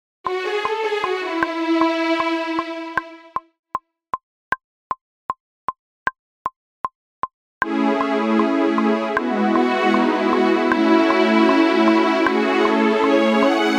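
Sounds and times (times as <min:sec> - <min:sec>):
strings: 0:00.3 - 0:03.4, 0:07.7 - 0:13.7.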